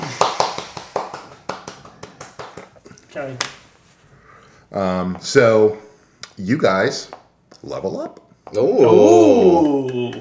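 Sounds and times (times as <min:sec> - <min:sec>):
players clapping at a tabletop role-playing game session: 0:00.0 - 0:03.6, 0:08.8 - 0:10.1
speech: 0:03.1 - 0:03.6, 0:04.7 - 0:05.8, 0:06.4 - 0:10.1.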